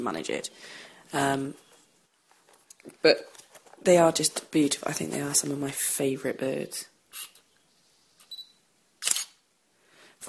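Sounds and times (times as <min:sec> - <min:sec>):
speech: 0:00.0 - 0:01.6, 0:02.8 - 0:07.3
camera shutter click: 0:09.0 - 0:09.4.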